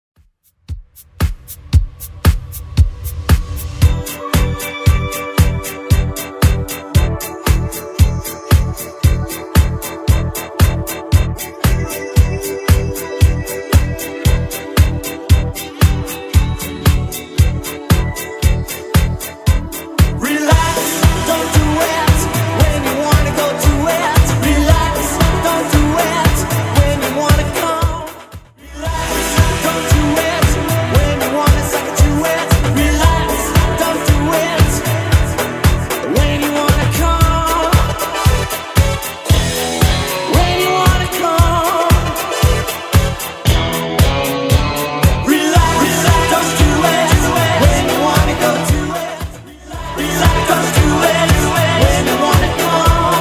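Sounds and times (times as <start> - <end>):
80s Redrum drum machine beat: 0.2 - 53.2.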